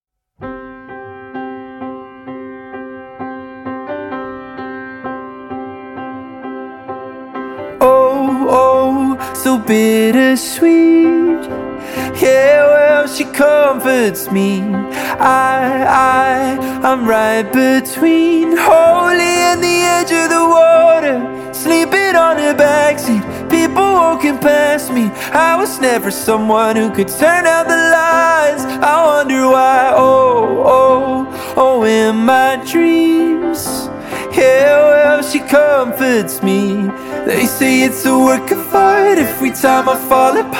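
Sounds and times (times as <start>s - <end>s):
piano music: 0.4s - 40.5s.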